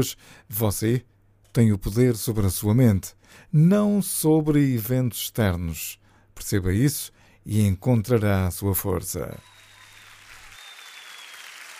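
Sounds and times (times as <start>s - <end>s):
speech: 0.0s - 9.6s
audience applause on a Portuguese-language radio show: 9.4s - 11.7s.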